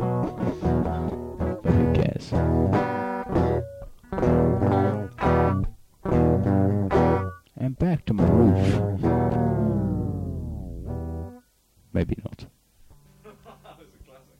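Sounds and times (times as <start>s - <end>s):
blues music: 0.0s - 11.4s
laughter: 13.2s - 14.0s.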